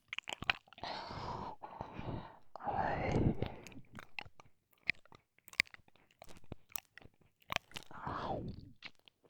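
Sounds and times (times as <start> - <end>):
ear licking in the right ear: 0.2 - 4.4, 7.5 - 8.9.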